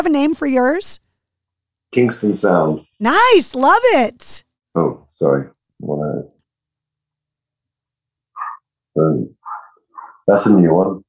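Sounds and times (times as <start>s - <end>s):
speech: 0.0s - 1.0s, 1.9s - 6.3s, 9.0s - 9.4s, 10.3s - 11.0s
dog barking in the background: 8.4s - 8.7s, 9.4s - 10.3s.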